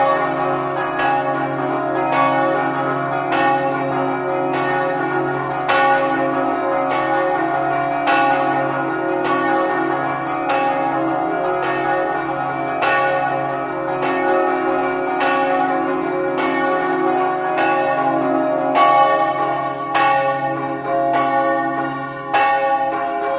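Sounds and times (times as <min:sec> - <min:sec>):
festive scampanottata bell ringing: 0:00.0 - 0:23.3.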